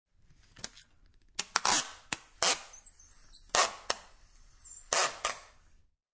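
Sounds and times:
Scotch tape being ripped from the spool: 1.4s - 2.8s, 3.5s - 4.2s, 4.9s - 5.6s.

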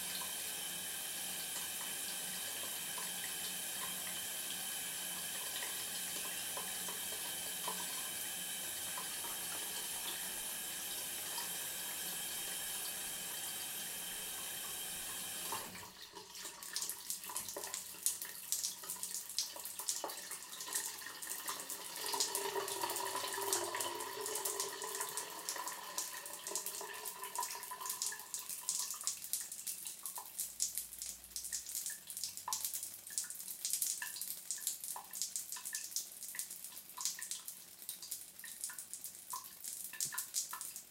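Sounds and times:
bathroom shower turned on and running: 0.0s - 40.8s
shower water dripping: 1.3s - 40.8s.

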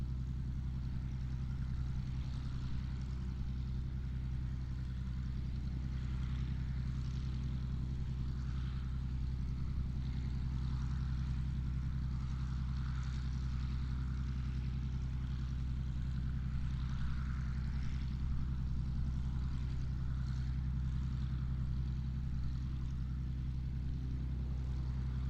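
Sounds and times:
distant P-40 Kittyhawk propeller aircraft idling: 0.0s - 25.2s.

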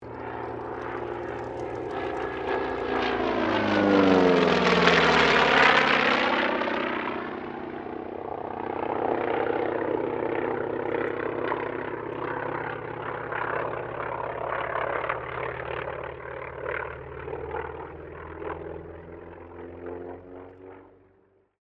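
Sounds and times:
T-28D Trojan aircraft passing: 0.0s - 21.6s.

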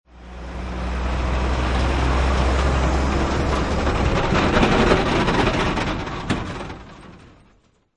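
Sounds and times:
rattling semi truck driving by: 0.1s - 7.5s.

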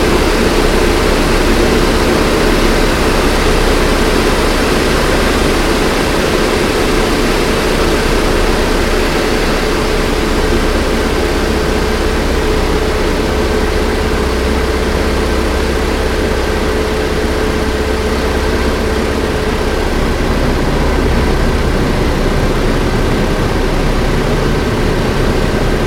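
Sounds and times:
T-28D Trojan airplane flying interior drone: 0.0s - 25.8s.

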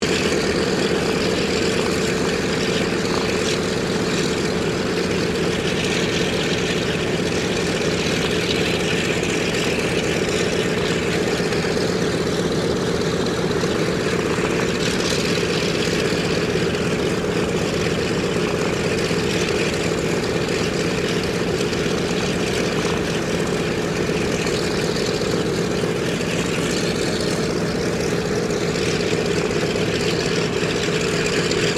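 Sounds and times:
Douglas DC3 aircraft idling: 0.0s - 31.7s.

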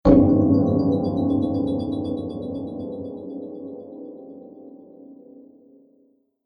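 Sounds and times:
fantasy magical hit: 0.1s - 2.8s.

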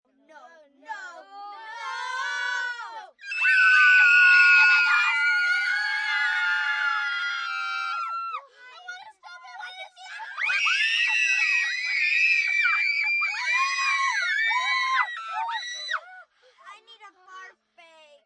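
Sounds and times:
group of 8-10 children screaming on a roller-coaster: 1.9s - 8.4s, 10.4s - 16.0s.

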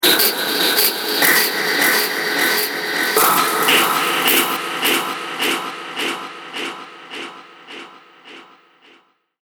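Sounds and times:
dark horror hits: 0.2s - 9.0s.

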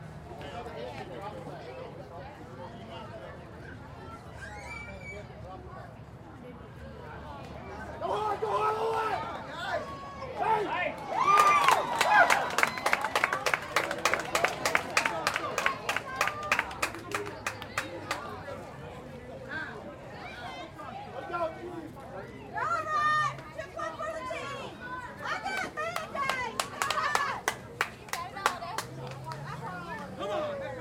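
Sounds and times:
Little League baseball game crowd cheering: 8.0s - 18.7s, 22.6s - 30.7s.

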